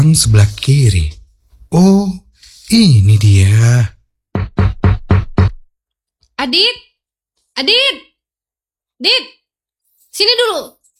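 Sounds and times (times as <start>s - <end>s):
speech: 0.1s - 4.8s, 6.4s - 6.9s, 7.6s - 8.1s, 9.0s - 9.4s, 10.2s - 10.8s
knocking on a wooden door: 4.3s - 5.7s.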